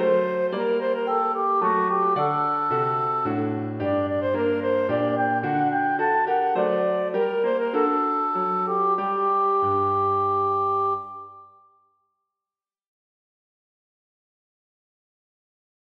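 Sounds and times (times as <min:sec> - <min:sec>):
clarinet and piano minuet: 0:00.0 - 0:11.7.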